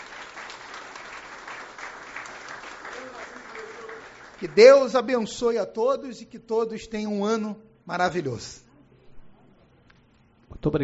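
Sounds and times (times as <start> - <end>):
crowd clapping: 0.0 - 5.6
speech: 4.4 - 8.6, 10.6 - 10.8.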